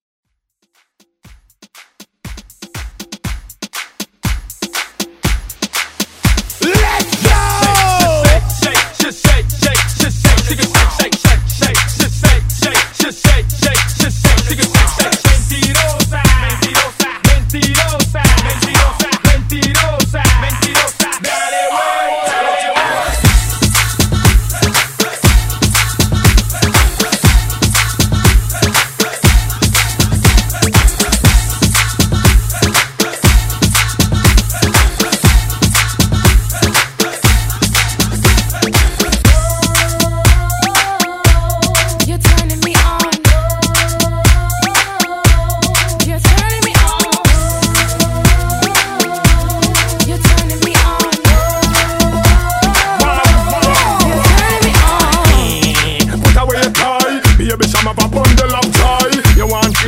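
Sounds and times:
throwback hype music: 1.2s - 59.8s.

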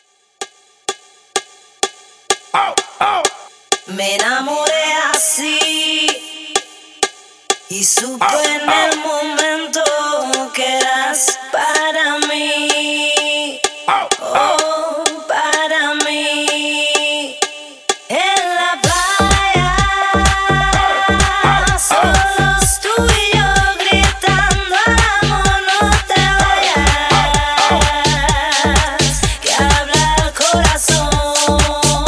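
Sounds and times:
hype house music: 2.3s - 32.0s.

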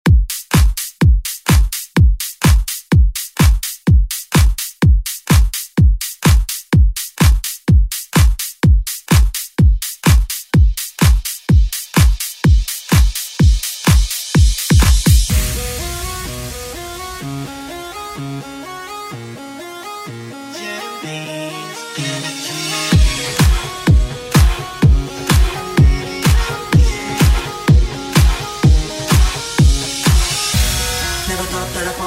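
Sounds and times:
pop drum loop: 0.0s - 32.0s.

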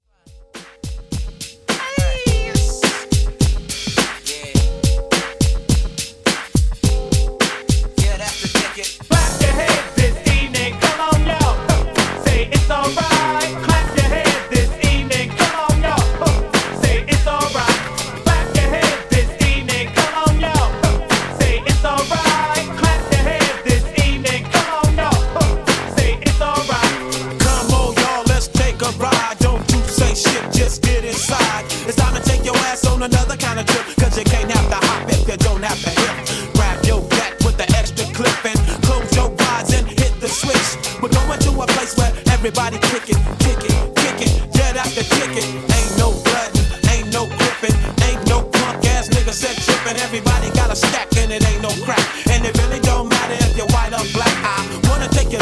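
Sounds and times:
Classic Redrum drum beat at 105 BPM: 0.3s - 55.3s.

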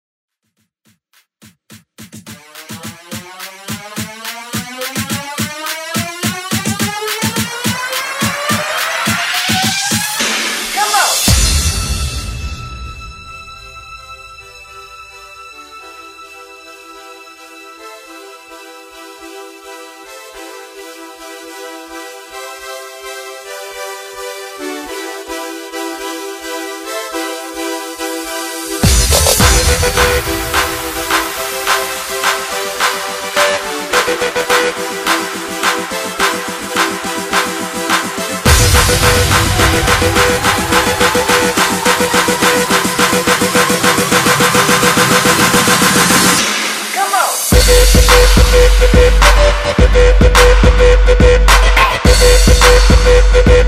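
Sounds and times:
twerk to house music transition: 1.2s - 12.8s, 20.5s - 53.6s.

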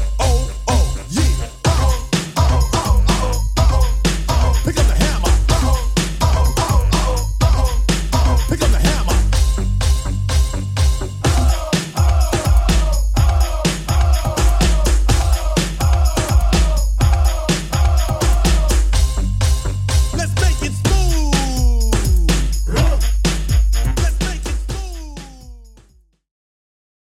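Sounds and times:
drum machine beat at 125 bpm: 0.0s - 26.1s.

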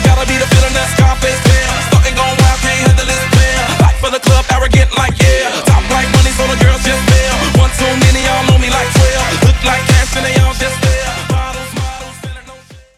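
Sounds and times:
Redrum drum machine beat: 0.0s - 12.9s.

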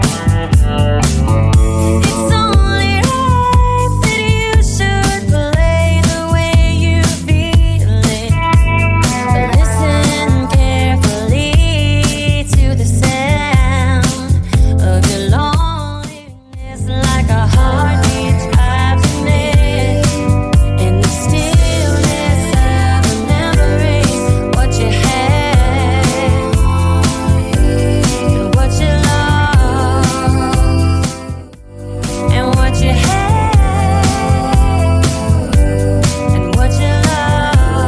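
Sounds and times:
DJ friendly music loop: 0.0s - 37.8s.

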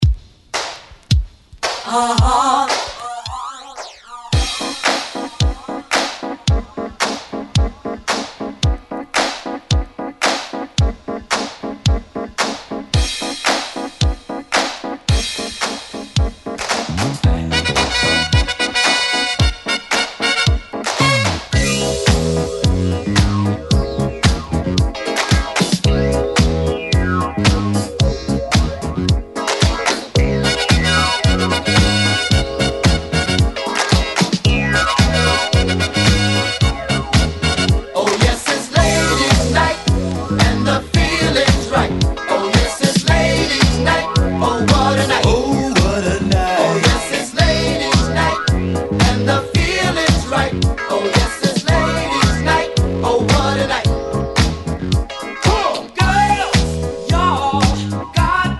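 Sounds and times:
70s music at 111 BPM: 0.0s - 58.5s.

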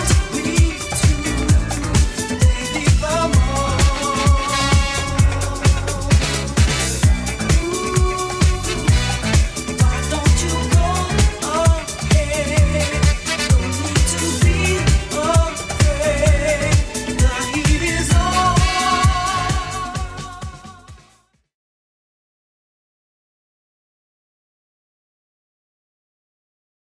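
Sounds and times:
70s drum loop at 130 bpm: 0.0s - 21.2s.

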